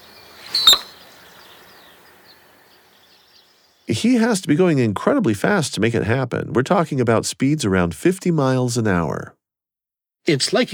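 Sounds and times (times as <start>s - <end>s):
male bird's tail-feather chirp during dive: 0.0s - 2.0s
speech: 3.9s - 9.4s, 10.3s - 10.7s.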